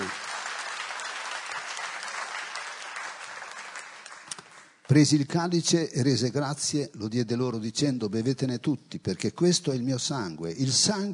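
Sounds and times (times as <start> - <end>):
audience applause: 0.0 - 4.8
speech: 4.9 - 11.1.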